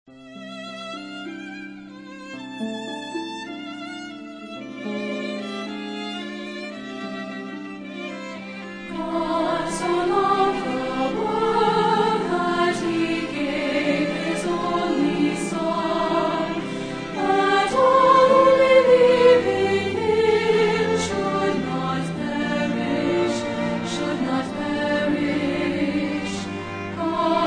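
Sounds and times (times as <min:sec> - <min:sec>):
orchestra: 0:00.2 - 0:27.4
singers: 0:08.9 - 0:27.4.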